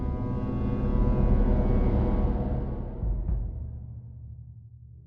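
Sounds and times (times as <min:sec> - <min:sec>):
tension music block: 0:00.0 - 0:04.0.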